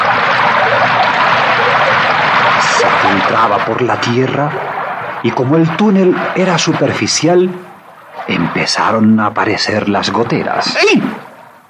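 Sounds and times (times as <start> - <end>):
insecticide liquid pouring down in abundance: 0.0 - 11.6
speech: 3.3 - 11.3.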